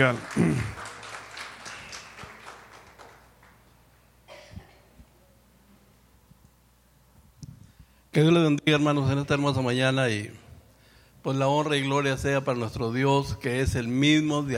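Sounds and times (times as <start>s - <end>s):
speech: 0.0s - 0.7s, 8.2s - 10.4s, 11.2s - 14.5s
audience applause: 0.0s - 3.7s.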